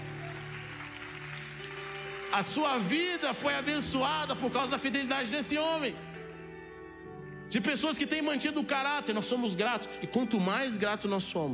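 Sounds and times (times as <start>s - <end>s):
church congregation applauding: 0.0s - 5.8s
speech: 2.3s - 6.0s, 7.5s - 11.5s.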